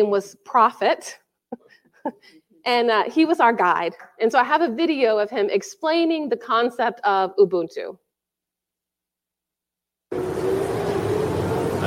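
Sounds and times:
speech: 0.0 - 1.2, 2.0 - 8.0
car driving past: 10.1 - 11.8.

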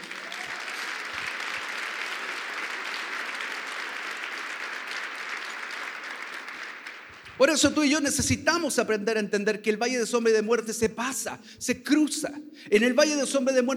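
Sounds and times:
audience applause: 0.0 - 8.0
speech: 7.4 - 13.7.

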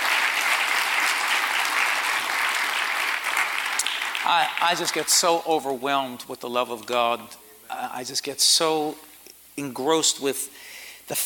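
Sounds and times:
audience hand clapping: 0.0 - 5.8
speech: 4.3 - 11.2.

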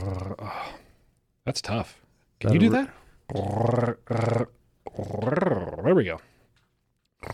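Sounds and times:
guttural throat-rolled R growl: 0.0 - 0.7, 3.3 - 6.0, 7.2 - 7.3
speech: 1.5 - 6.3.

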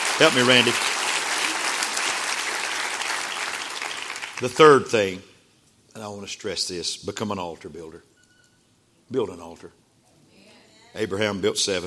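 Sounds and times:
audience clapping hands: 0.0 - 4.8
speech: 0.2 - 1.0, 4.4 - 5.3, 6.0 - 8.1, 9.1 - 9.8, 10.9 - 11.8.

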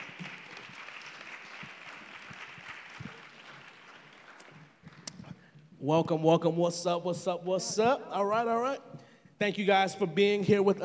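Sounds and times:
audience applause at a church ministry gathering: 0.0 - 5.1
speech: 5.8 - 10.8.

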